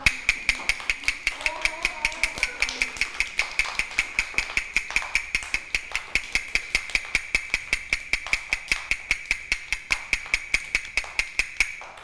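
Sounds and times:
person speaking: 0.0 - 7.9
fast rhythmic tapping beats: 0.0 - 12.0.

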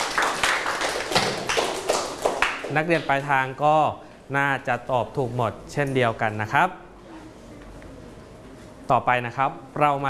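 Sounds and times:
students clapping for themselves: 0.0 - 3.2
speech: 2.7 - 6.8, 8.9 - 10.0.

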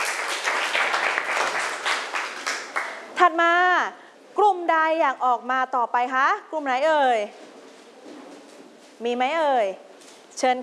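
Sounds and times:
students clapping for a group: 0.0 - 3.1
speech: 3.2 - 7.4, 9.0 - 9.8, 10.4 - 10.6.

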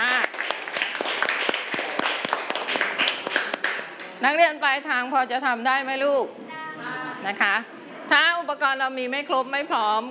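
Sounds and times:
children clapping in a classroom: 0.0 - 4.2
speech: 4.2 - 6.4, 7.2 - 10.0.

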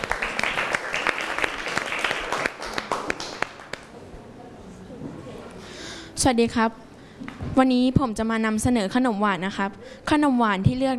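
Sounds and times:
audience applause for the chef: 0.0 - 3.9
speech: 6.2 - 6.9, 7.6 - 10.9.

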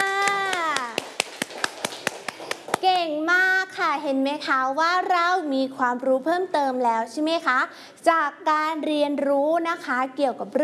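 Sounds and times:
children clapping for classmates during a lesson: 0.0 - 2.8
speech: 3.9 - 10.6.

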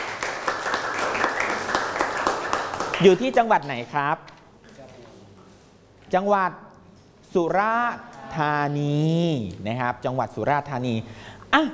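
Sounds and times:
class applauding a group of students who presented on Phra Borommathat Chaiya: 0.0 - 3.5
speech: 3.0 - 4.3, 6.1 - 6.6, 7.3 - 11.7.

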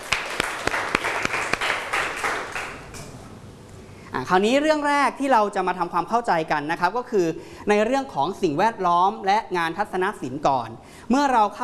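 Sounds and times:
classroom applause: 0.0 - 3.1
speech: 4.2 - 11.6.

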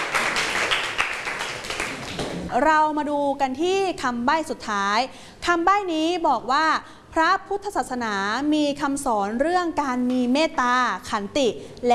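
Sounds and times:
classroom clapping for a student: 0.0 - 2.5
speech: 2.5 - 11.9.

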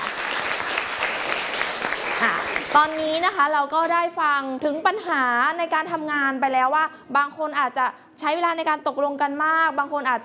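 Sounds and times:
classroom applause for a student group: 0.0 - 3.2
speech: 2.2 - 10.2.

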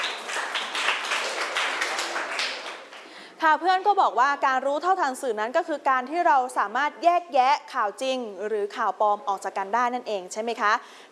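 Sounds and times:
students clapping: 0.0 - 3.2
speech: 3.4 - 11.0.

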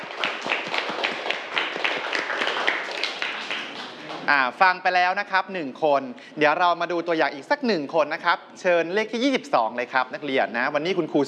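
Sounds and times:
students applauding in a classroom: 0.0 - 4.6
speech: 4.3 - 11.2.

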